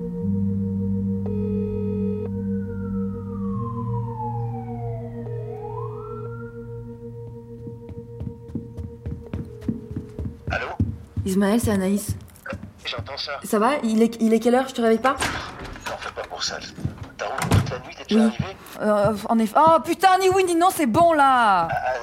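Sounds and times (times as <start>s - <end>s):
low droning hum: 0.0s - 10.4s
ambulance siren wailing: 1.0s - 10.8s
speech: 10.5s - 12.2s, 12.9s - 15.5s, 16.4s - 16.8s, 17.7s - 21.9s.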